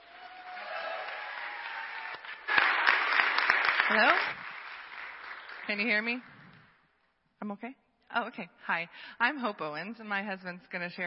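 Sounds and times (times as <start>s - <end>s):
church congregation applause welcoming two guest speakers: 0.0s - 6.7s
speech: 3.9s - 4.4s, 5.7s - 6.3s, 7.4s - 11.0s.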